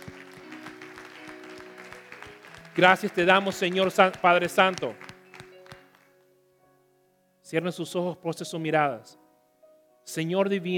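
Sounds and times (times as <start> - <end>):
applause at a church service: 0.0 - 6.2
speech: 2.8 - 5.0, 7.5 - 9.2, 10.1 - 10.7.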